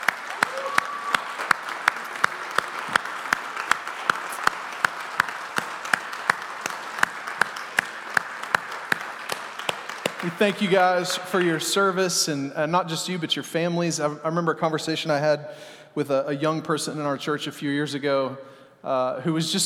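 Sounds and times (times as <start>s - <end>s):
audience standing and applauding veterans: 0.0s - 12.0s
speech: 10.3s - 19.6s.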